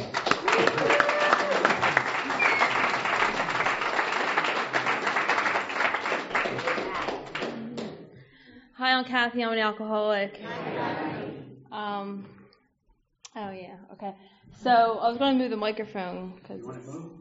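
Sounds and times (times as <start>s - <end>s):
audience applause welcoming the speaker at a recovery group meeting: 0.0s - 8.0s
speech: 9.0s - 11.2s, 11.8s - 12.4s, 13.4s - 17.1s.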